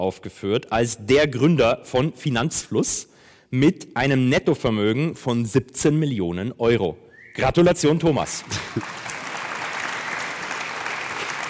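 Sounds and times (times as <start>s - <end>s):
speech: 0.0s - 9.0s
soft applause congratulating someone: 8.4s - 11.4s.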